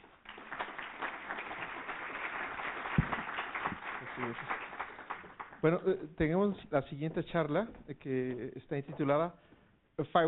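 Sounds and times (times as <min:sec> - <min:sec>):
audience applauding: 0:00.0 - 0:06.0
speech: 0:04.2 - 0:04.6, 0:05.6 - 0:10.2.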